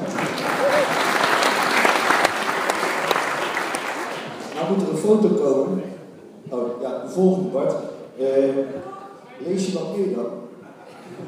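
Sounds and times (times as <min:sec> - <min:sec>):
audience applause: 0:00.0 - 0:04.9
speech: 0:05.0 - 0:05.9, 0:07.2 - 0:10.4
laughter: 0:10.5 - 0:11.2.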